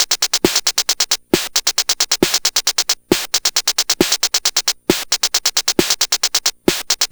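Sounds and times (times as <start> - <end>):
Game Boy 8-bit drums: 0.0 - 7.1.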